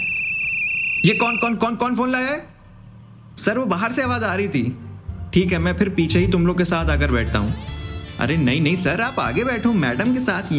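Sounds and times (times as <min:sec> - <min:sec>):
whistle being blown: 0:00.0 - 0:02.0
speech: 0:01.0 - 0:02.5, 0:03.4 - 0:10.5.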